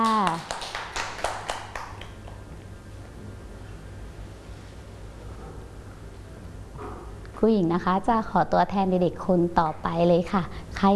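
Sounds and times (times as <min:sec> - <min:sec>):
children clapping: 0:00.0 - 0:02.4
speech: 0:07.4 - 0:10.9.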